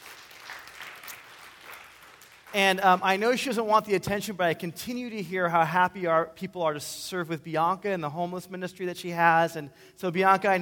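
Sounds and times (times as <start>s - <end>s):
audience applause: 0.0s - 2.5s
speech: 2.5s - 10.6s.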